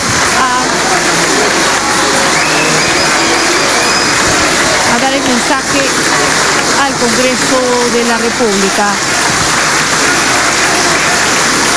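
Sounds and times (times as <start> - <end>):
applause in a congress chamber: 0.0 - 11.7
speech: 5.5 - 9.2.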